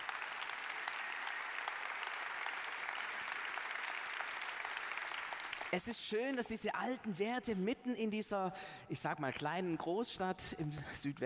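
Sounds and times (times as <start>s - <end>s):
audience applause: 0.0s - 5.8s
speech: 5.7s - 11.2s.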